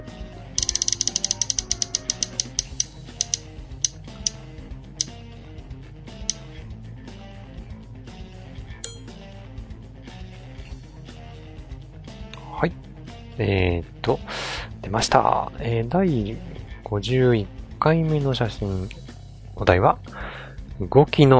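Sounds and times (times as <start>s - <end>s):
roulette spin sound effect clicking: 0.6s - 4.0s
speech: 12.6s - 12.8s, 13.4s - 19.0s, 19.6s - 20.2s, 20.8s - 21.3s.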